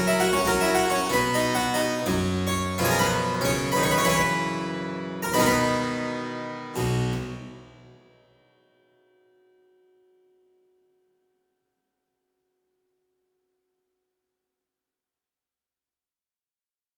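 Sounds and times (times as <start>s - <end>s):
harpsichord aria variation in C major: 0.0s - 7.9s.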